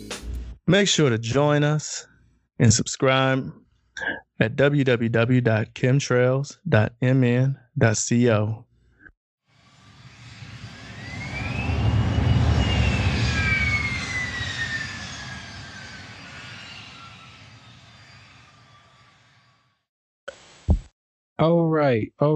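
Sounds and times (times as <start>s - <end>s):
speech: 0.7s - 8.7s, 21.4s - 22.3s
high whine of a fixed-wing airplane taking off: 9.5s - 19.8s
fixed-wing airplane engine roar during takeoff: 9.6s - 19.4s.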